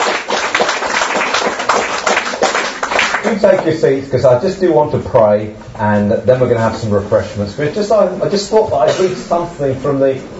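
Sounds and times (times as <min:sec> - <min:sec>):
church congregation applause during a service: 0:00.0 - 0:03.8
speech: 0:03.3 - 0:10.3.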